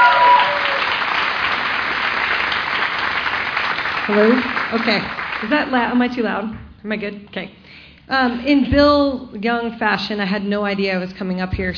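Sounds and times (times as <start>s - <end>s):
audience applause: 0.0s - 5.7s
speech: 4.1s - 11.7s.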